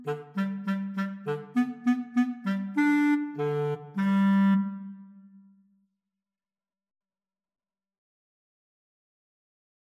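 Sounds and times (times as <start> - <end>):
oboe in a clarinet-oboe duet: 0.0 - 5.6
clarinet in a clarinet-oboe duet: 0.0 - 5.7.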